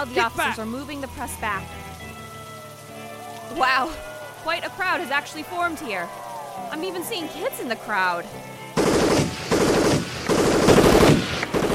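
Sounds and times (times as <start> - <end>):
speech: 0.0 - 1.9, 3.5 - 8.6
automatic gunfire: 8.8 - 11.7.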